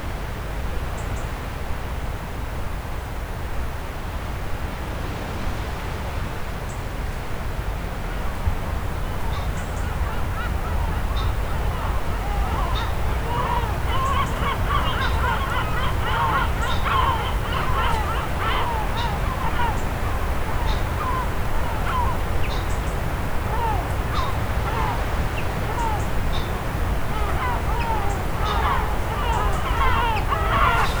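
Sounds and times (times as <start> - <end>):
sea at the Lérins islands: 0.0 - 30.9
gulls calling at the Lérins islands: 9.4 - 30.9.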